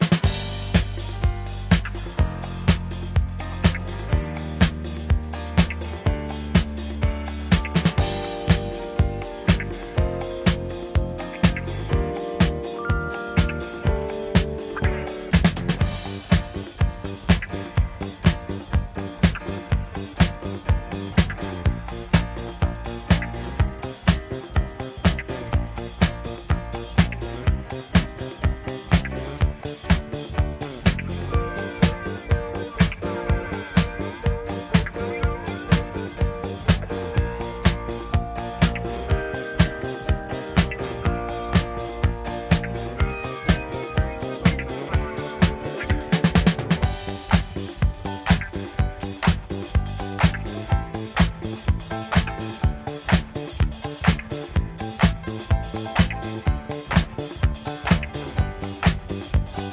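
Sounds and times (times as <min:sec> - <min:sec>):
bass music loop: 0:00.0 - 0:59.7.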